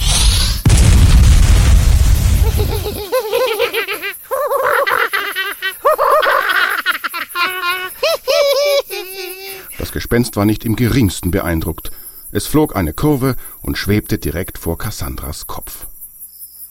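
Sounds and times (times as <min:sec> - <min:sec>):
fireball explosion: 0:00.0 - 0:03.1
high-pitched cackling laughter: 0:02.4 - 0:09.8
speech: 0:10.1 - 0:15.9.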